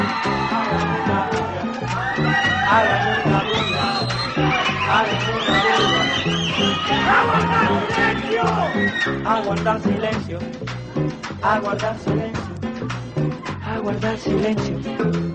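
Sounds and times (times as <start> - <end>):
crowd clapping: 0.0 - 9.8
crowd making noise: 0.0 - 14.4
speech: 8.2 - 10.7, 11.4 - 12.5, 13.8 - 15.2.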